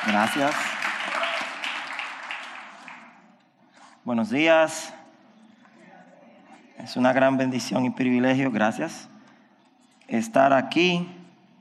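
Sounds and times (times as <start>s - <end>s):
speech: 0.0s - 0.7s, 4.0s - 5.0s, 6.8s - 9.1s, 10.1s - 11.2s
audience applause: 0.0s - 3.3s.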